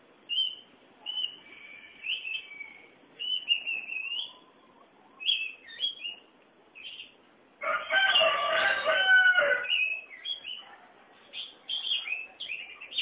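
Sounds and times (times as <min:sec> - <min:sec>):
background hiss: 0:00.0 - 0:13.0
Oriental magpie-robin giving soft whistled phrases: 0:00.3 - 0:04.4, 0:05.2 - 0:06.2, 0:09.6 - 0:10.6.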